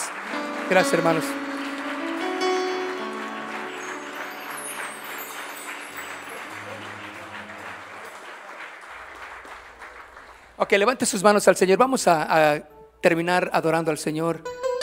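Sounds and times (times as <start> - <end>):
audience applause: 0.0 - 11.0
sustained organ-like tones: 0.4 - 8.0
speech: 0.7 - 1.4, 10.7 - 14.6.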